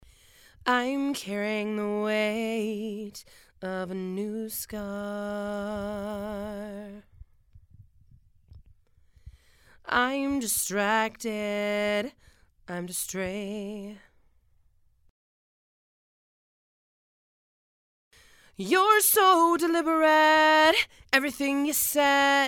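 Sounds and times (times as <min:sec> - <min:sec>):
female vocals: 0:00.6 - 0:07.2, 0:09.8 - 0:14.2, 0:18.5 - 0:22.4.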